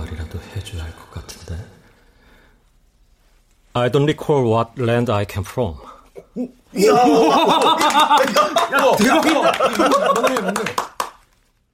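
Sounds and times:
speech: 0:03.8 - 0:10.9
people laughing: 0:06.8 - 0:11.0
three people clapping at once: 0:07.0 - 0:11.4.

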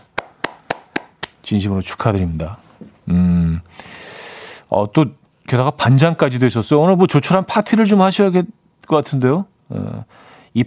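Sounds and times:
hand clapping applause: 0:00.0 - 0:01.4
speech: 0:01.5 - 0:03.9, 0:04.7 - 0:10.6.

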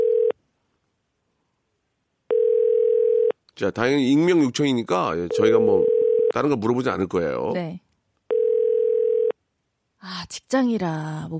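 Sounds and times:
telephone ringback tone: 0:00.0 - 0:00.4, 0:02.3 - 0:03.4, 0:05.3 - 0:06.3, 0:08.3 - 0:09.4
speech: 0:03.6 - 0:07.8, 0:10.0 - 0:11.3.

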